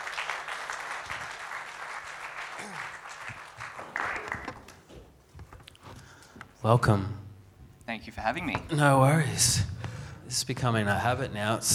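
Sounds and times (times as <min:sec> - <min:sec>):
audience applause welcoming a guest speaker: 0:00.0 - 0:04.9
speech: 0:06.6 - 0:07.2, 0:08.0 - 0:09.7, 0:10.3 - 0:11.7.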